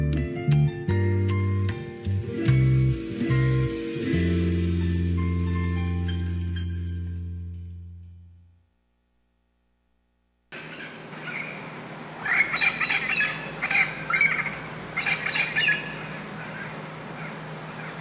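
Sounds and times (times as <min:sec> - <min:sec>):
hiss: 0:00.2 - 0:17.9
low tone: 0:01.0 - 0:08.8
golden eagles screeching: 0:10.5 - 0:17.9.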